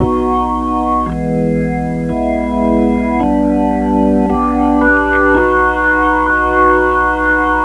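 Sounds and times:
organ lick: 0.0s - 7.6s.

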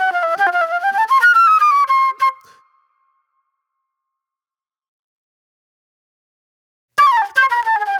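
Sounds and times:
soul flute music: 0.0s - 3.0s, 7.0s - 7.9s.

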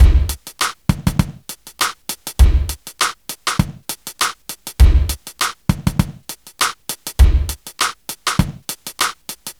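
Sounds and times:
smooth R&B drums: 0.0s - 9.5s.

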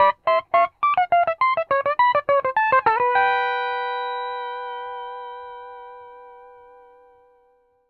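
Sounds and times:
music loop: 0.0s - 3.5s.

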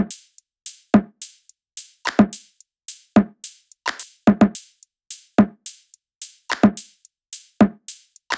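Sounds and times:
music loop: 0.1s - 8.3s.

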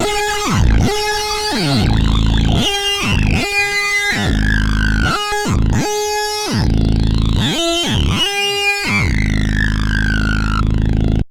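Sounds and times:
Yamaha CS1x filtered synthesizer riffs: 0.0s - 11.2s.

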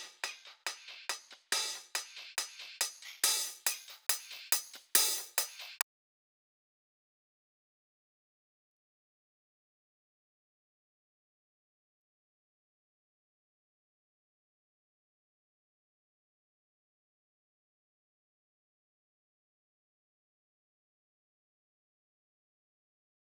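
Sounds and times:
140 BPM intro drum break with hi-hat: 0.0s - 5.8s.

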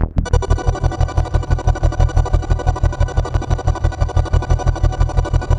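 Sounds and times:
synth line: 0.0s - 5.5s.

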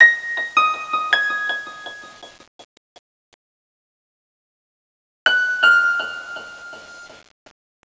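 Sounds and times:
minimal piano: 0.0s - 2.4s, 5.3s - 7.2s.

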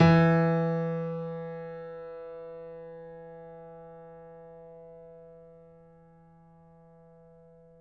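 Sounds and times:
piano: 0.0s - 7.7s.

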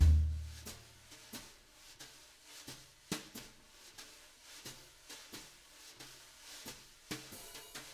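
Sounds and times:
drum brush loops: 0.0s - 0.7s.

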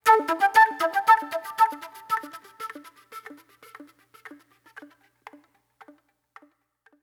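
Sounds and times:
soul flute: 0.0s - 4.4s.

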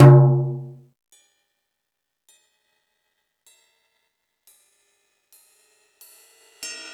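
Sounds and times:
jazz drums from E-MU Pro-Cussion: 0.0s - 0.7s.

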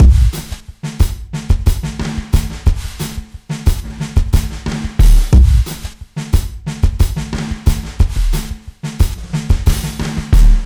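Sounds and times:
90 BPM downbeat dance groove: 0.0s - 10.6s.

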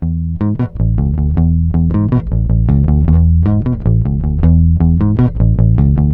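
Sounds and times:
bass note E: 0.0s - 6.1s.

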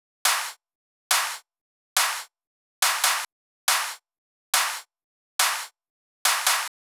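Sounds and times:
140 BPM drum loop: 0.3s - 1.4s, 2.0s - 4.0s, 4.6s - 5.7s, 6.3s - 6.8s
handclaps: 0.3s - 1.4s, 2.0s - 4.0s, 4.6s - 6.7s.

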